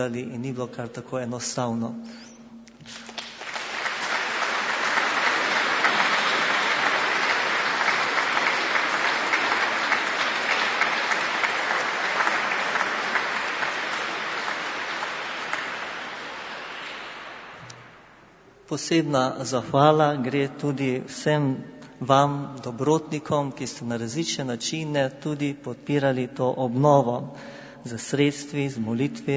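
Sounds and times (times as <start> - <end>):
speech: 0.0 - 3.1, 18.7 - 29.3
crowd applause: 2.9 - 18.0.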